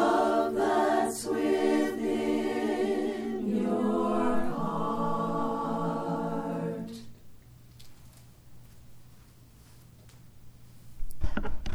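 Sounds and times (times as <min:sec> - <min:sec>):
choir singing melody and harmony: 0:00.0 - 0:07.2.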